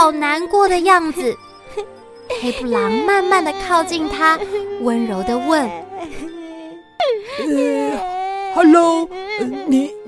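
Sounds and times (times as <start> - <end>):
speech: 0.0 - 6.4, 7.0 - 10.0
little girl crying: 1.7 - 10.0.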